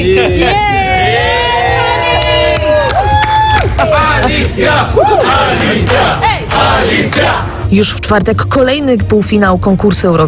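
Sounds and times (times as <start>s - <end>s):
journalists cheering: 0.1s - 7.5s
journalists applauding: 1.0s - 7.5s
speech: 7.1s - 10.2s.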